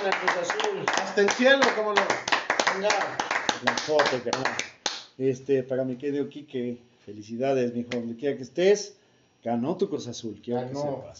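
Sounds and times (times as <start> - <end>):
clapping applause: 0.0 - 5.1
speech: 0.1 - 11.1.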